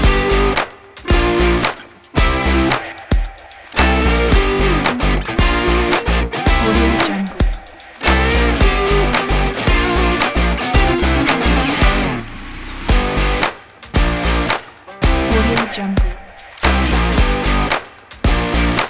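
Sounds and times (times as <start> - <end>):
energetic indie rock music: 0.0 - 12.2, 12.9 - 18.8
clapping: 0.5 - 2.1, 2.7 - 12.0, 13.4 - 13.9, 14.5 - 14.9, 15.6 - 15.8, 16.4 - 18.8.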